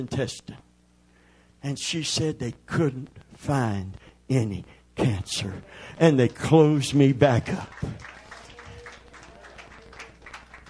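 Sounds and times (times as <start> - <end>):
speech: 0.0 - 0.6, 1.6 - 8.1
audience applause: 6.2 - 10.6.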